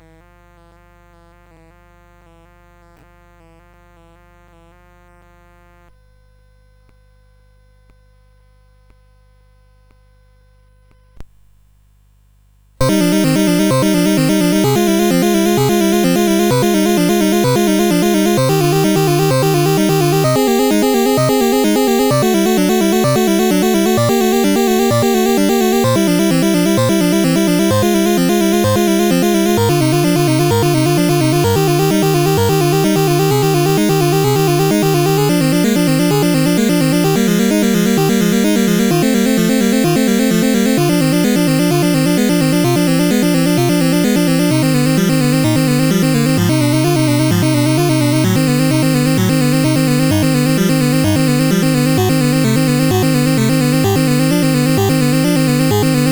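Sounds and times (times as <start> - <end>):
prelude: 12.8 - 56.0.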